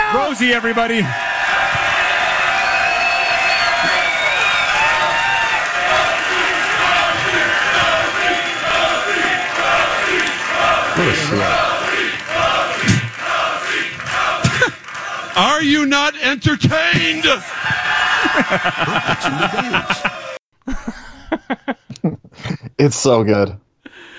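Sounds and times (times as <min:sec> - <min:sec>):
laughter: 0:00.0 - 0:15.2, 0:16.7 - 0:22.8
large crowd cheering and chanting a name: 0:00.0 - 0:20.4
speech: 0:00.1 - 0:01.3, 0:15.4 - 0:20.1, 0:22.8 - 0:23.6.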